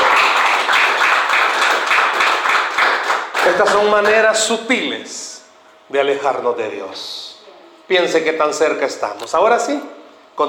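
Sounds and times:
audience clapping loudly: 0.0 - 4.3
speech: 3.6 - 5.3, 5.9 - 7.2, 7.9 - 10.4.

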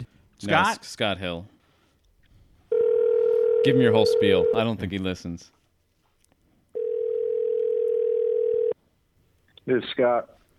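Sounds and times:
speech: 0.4 - 1.6, 3.6 - 5.6, 9.6 - 10.4
telephone dial tone while placing call: 2.7 - 4.6, 6.8 - 8.8.

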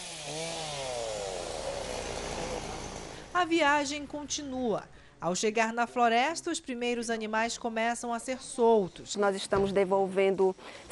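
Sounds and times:
chainsaw cutting a fallen tree: 0.0 - 3.4
speech: 3.4 - 10.9.

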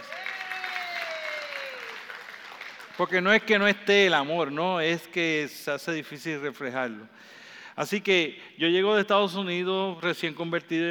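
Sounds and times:
audience applause: 0.0 - 3.2
speech: 3.0 - 10.8.

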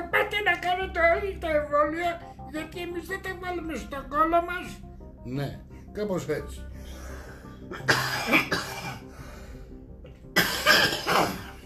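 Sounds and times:
speech: 0.7 - 7.0, 7.7 - 8.8
man coughing after choking while imitating a voice: 7.7 - 9.1, 10.4 - 11.6.

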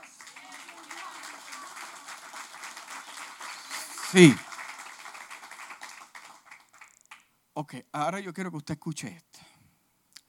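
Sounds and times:
audience applauding loudly: 0.0 - 7.2
speech: 4.1 - 4.4, 7.7 - 9.5.

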